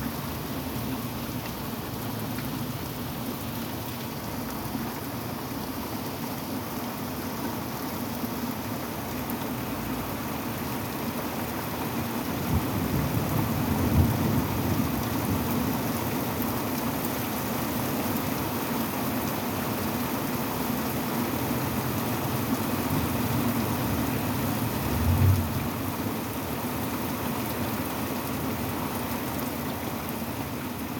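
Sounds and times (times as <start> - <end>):
rain in a storm: 0.0 - 30.9
rumbling thunder: 24.6 - 25.9.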